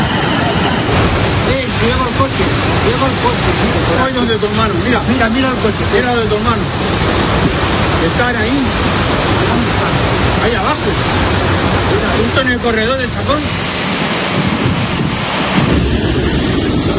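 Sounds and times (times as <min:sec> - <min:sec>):
rushing floodwater torrent in a street: 0:00.0 - 0:16.9.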